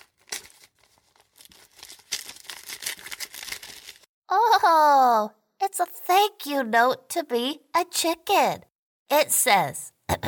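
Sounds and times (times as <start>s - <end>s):
envelope being torn open: 0.0s - 4.1s
speech: 4.7s - 10.2s.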